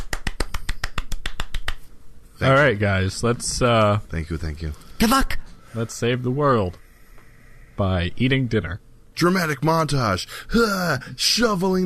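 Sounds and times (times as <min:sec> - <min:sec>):
quiet polite golf claps: 0:00.0 - 0:01.9
speech: 0:02.4 - 0:06.8, 0:07.8 - 0:11.8.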